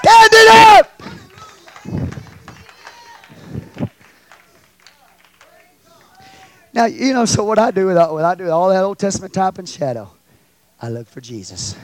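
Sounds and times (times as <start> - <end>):
audience hand clapping: 1.0 - 6.4
speech: 6.8 - 10.2, 10.8 - 11.8.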